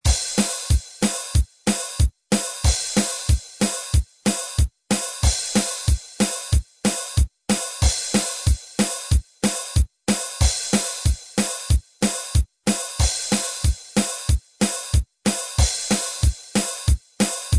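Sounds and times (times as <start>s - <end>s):
two-four time beat: 0.1s - 17.5s.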